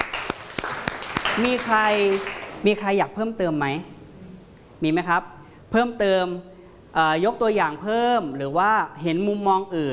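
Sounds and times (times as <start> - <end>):
classroom applause for a student: 0.0 - 2.6
speech: 1.4 - 3.9, 4.8 - 9.9.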